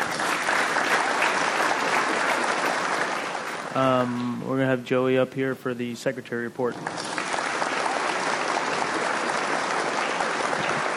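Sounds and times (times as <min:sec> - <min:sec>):
crowd applause: 0:00.0 - 0:04.3, 0:06.8 - 0:10.9
speech: 0:03.7 - 0:07.1.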